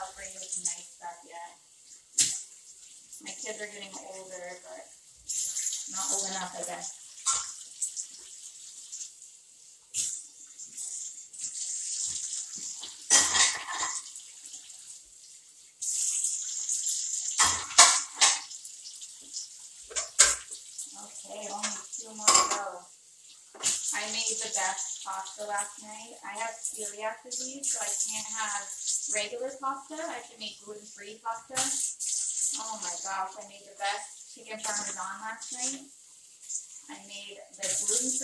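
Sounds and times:
running tap water: 0.0 - 38.2
speech: 3.5 - 7.0, 25.4 - 31.9, 32.6 - 36.0, 36.9 - 38.2
plastic dishes rinsed and handled: 13.1 - 14.0, 17.4 - 18.5.

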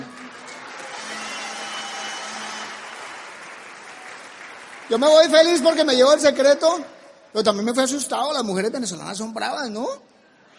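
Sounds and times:
crowd clapping: 0.0 - 6.3
speech: 4.9 - 10.1.

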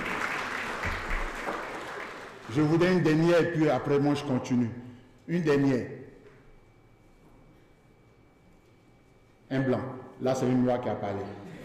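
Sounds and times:
audience applause: 0.0 - 2.7
speech: 2.5 - 6.0, 9.5 - 11.5.

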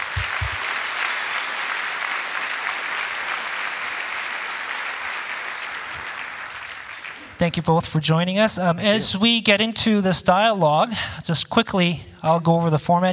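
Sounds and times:
audience applause welcoming guests to an evening dialogue event: 0.0 - 7.4
speech: 7.4 - 13.1.

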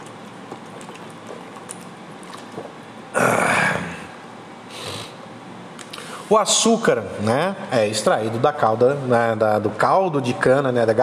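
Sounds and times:
person gulping water: 0.0 - 4.2
person exhaling: 3.2 - 5.2
speech: 6.3 - 11.0.

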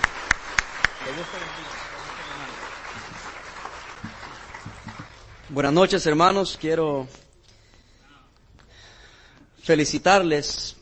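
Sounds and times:
audience applauding loudly: 0.0 - 5.8
speech: 1.1 - 2.0, 5.5 - 7.2, 9.6 - 10.7.

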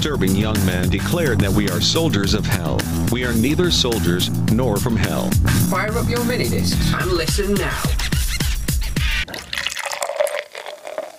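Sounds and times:
speech: 0.0 - 8.1
beer pouring into a glass: 9.2 - 11.1.

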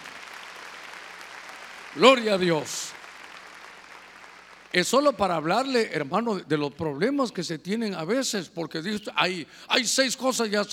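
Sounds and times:
audience clapping hands: 0.0 - 5.7
speech: 2.0 - 3.0, 4.7 - 10.7.

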